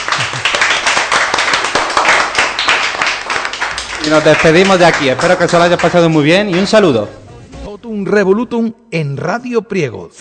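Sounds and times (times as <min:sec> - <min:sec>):
crowd applauding: 0:00.0 - 0:07.0
speech: 0:04.0 - 0:07.2, 0:07.8 - 0:10.1.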